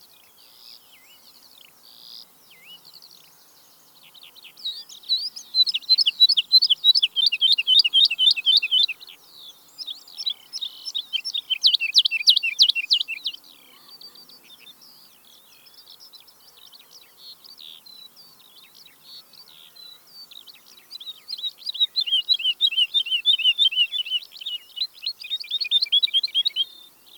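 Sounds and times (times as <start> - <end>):
woodlark singing with twittering and thin whistles: 3.9 - 9.1, 9.8 - 14.8, 19.9 - 27.1.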